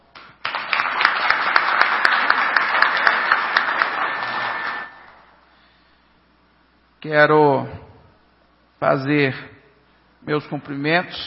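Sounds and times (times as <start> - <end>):
audience applause: 0.4 - 5.1
speech: 7.0 - 7.8, 8.8 - 9.5, 10.2 - 11.2.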